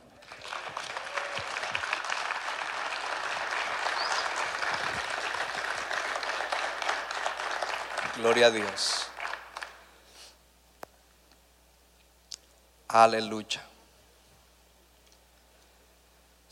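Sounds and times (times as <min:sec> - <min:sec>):
audience applause: 0:00.0 - 0:09.9
speech: 0:08.2 - 0:09.1, 0:12.9 - 0:13.7.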